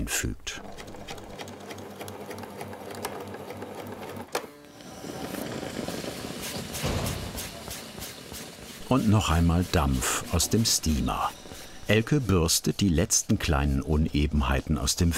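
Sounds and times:
speech: 0.0s - 0.7s, 8.9s - 15.1s
sewing machine stitching hat band: 0.6s - 12.6s.

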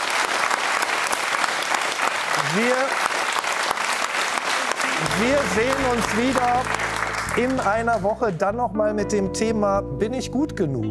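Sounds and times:
audience applause: 0.0s - 8.2s
speech: 2.5s - 3.1s, 5.2s - 10.8s.

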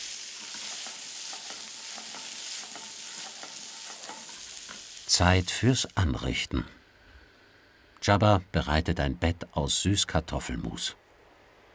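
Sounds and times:
fresh vegetables sizzling in hot oil: 0.0s - 6.0s
stirring clicks and scrapes: 0.4s - 4.9s
speech: 5.1s - 6.8s, 8.0s - 11.0s.

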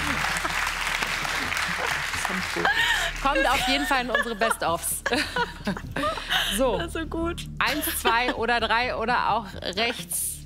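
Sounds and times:
audience applauding during a card game show: 0.0s - 3.7s
laughter: 0.0s - 6.8s
speech: 2.4s - 10.3s.

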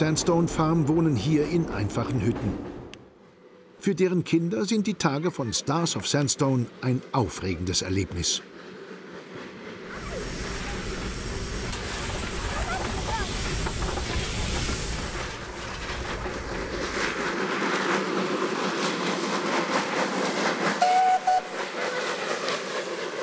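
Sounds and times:
speech: 0.0s - 2.8s, 3.8s - 8.5s
steam locomotive hissing: 7.1s - 23.2s.

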